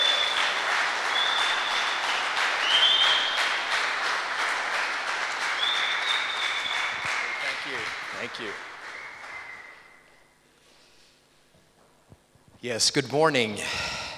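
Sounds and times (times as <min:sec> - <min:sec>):
church congregation applauding a visiting preacher: 0:00.0 - 0:10.3
speech: 0:08.3 - 0:08.7, 0:12.6 - 0:14.0.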